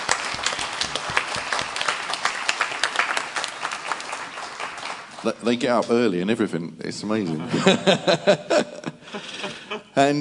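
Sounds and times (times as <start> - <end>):
audience applause: 0.0 - 5.8
speech: 5.2 - 10.2
laughter: 7.2 - 10.0.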